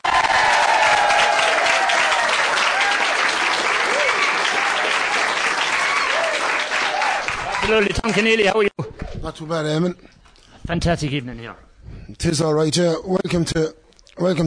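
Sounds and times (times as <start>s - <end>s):
audience applause in Burnan for children: 0.0s - 8.5s
speech: 7.7s - 10.1s, 10.7s - 14.4s.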